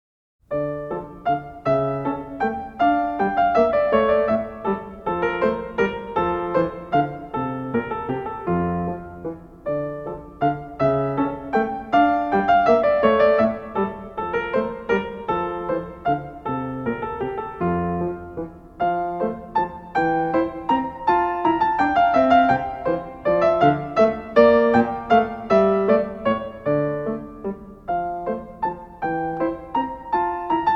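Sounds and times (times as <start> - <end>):
minuet in D minor: 0.5 - 30.7.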